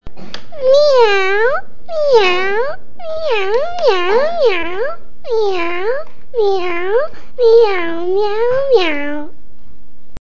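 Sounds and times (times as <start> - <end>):
cat: 0.7 - 9.3.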